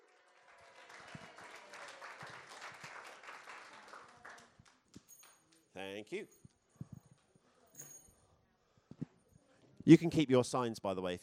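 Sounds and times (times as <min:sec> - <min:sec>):
audience clapping: 0:00.0 - 0:05.3
speech: 0:05.8 - 0:06.5, 0:09.9 - 0:11.2.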